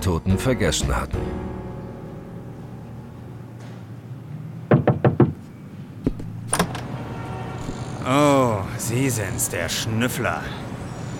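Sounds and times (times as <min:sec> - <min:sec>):
speech: 0:00.0 - 0:01.4, 0:08.9 - 0:10.7
knocking on a door: 0:04.7 - 0:05.4
door opened with a dull thud and latch click: 0:06.5 - 0:06.9.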